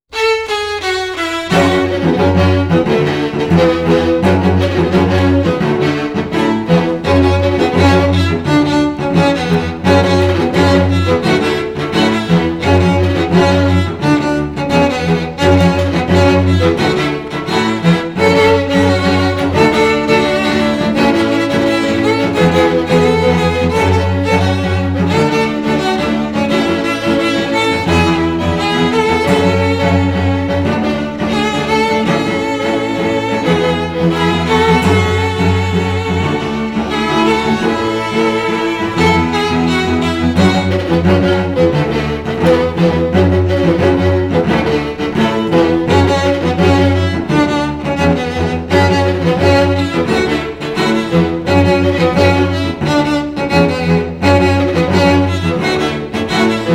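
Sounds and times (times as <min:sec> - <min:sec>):
string quartet: 0:00.0 - 0:56.7.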